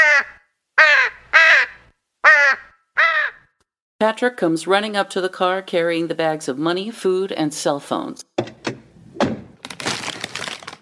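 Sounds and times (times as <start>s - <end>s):
ravens cawing on a van roof: 0.0s - 3.5s
speech: 4.0s - 8.5s.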